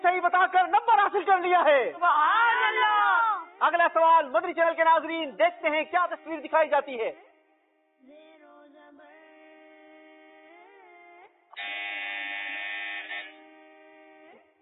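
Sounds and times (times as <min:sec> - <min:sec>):
speech: 0:00.2 - 0:02.8, 0:03.6 - 0:07.3
droning electronic tone with pitch bends: 0:09.1 - 0:14.6
quiz buzzer being pressed: 0:11.5 - 0:14.6.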